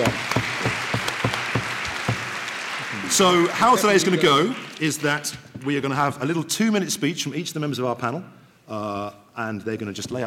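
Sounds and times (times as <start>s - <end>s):
audience applause welcoming a panel of speakers at a public discussion event: 0.0s - 5.4s
speech: 3.1s - 10.2s.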